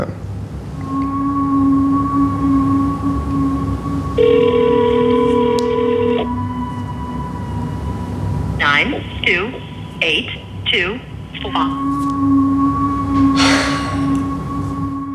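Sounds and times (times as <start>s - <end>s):
faint sustained tones: 0.0s - 15.1s
low hum: 0.0s - 15.1s
telephone ringback tone: 4.2s - 6.3s.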